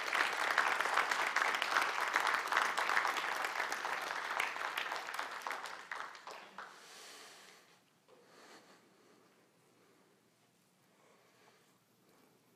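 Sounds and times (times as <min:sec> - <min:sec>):
audience clapping: 0:00.0 - 0:07.1.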